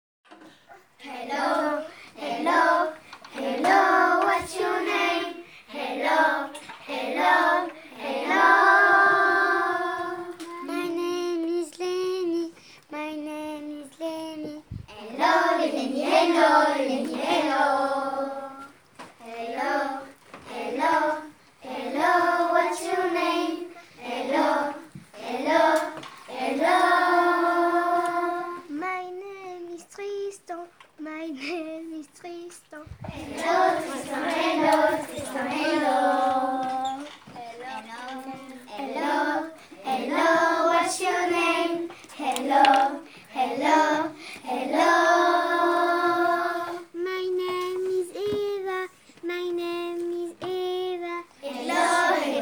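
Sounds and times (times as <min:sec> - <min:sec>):
vocals: 0:00.4 - 0:52.4.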